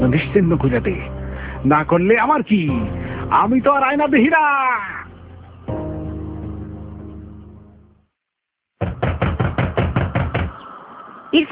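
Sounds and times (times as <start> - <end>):
speech: 0.0 - 5.0
knocking on a closed door: 8.8 - 10.6.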